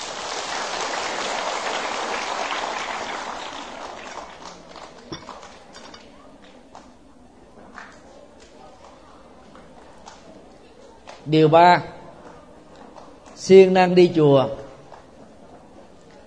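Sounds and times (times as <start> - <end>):
children giving a big round of applause: 0.0 - 5.7
speech: 11.3 - 12.0, 13.5 - 14.6.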